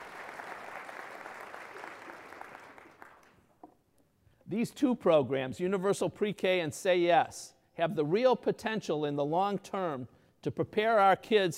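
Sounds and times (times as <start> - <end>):
crowd applause: 0.0 - 3.4
speech: 4.5 - 11.5.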